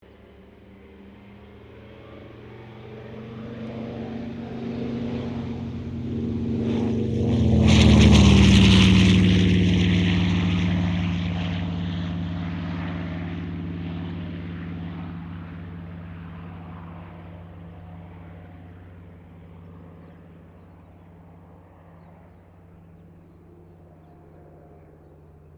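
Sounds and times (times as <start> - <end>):
CA-13 Boomerang aircraft taking off: 0.0 - 25.5.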